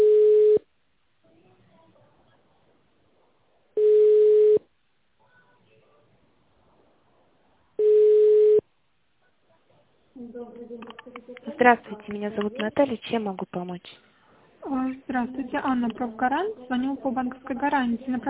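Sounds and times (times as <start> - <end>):
telephone ringback tone while a call connects: 0.0 - 0.6, 3.8 - 4.6, 7.8 - 8.6
speech: 10.7 - 14.1, 14.7 - 18.2.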